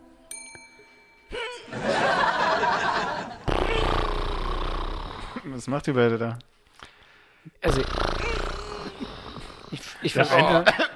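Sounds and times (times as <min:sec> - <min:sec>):
laughter: 0:01.6 - 0:03.5, 0:09.7 - 0:10.9
person imitating someone's snoring: 0:03.4 - 0:05.6, 0:07.6 - 0:10.4
speech: 0:05.6 - 0:06.5, 0:07.6 - 0:08.2, 0:10.0 - 0:10.8.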